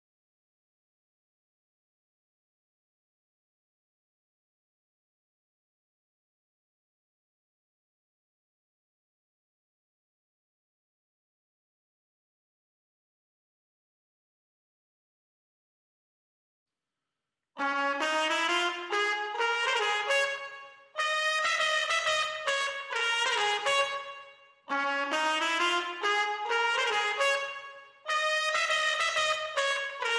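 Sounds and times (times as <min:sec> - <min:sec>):
clean trumpets: 0:17.6 - 0:30.1.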